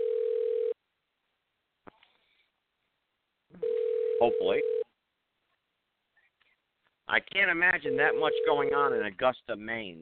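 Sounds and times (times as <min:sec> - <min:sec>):
ringback tone of an outgoing telephone call: 0:00.0 - 0:00.8, 0:03.6 - 0:04.8, 0:07.9 - 0:09.0
speech: 0:04.2 - 0:04.8, 0:07.1 - 0:09.9.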